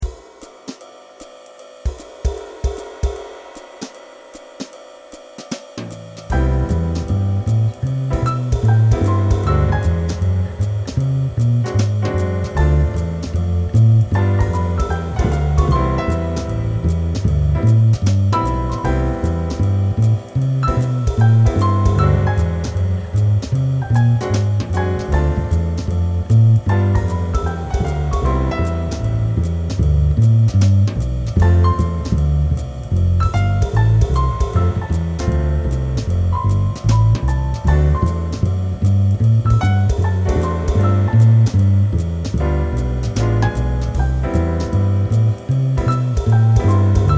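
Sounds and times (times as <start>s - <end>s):
jazz trio playing: 5.4s - 47.1s.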